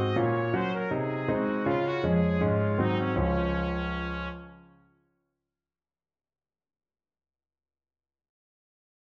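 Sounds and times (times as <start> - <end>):
trumpet playing a bouree: 0.0 - 4.8.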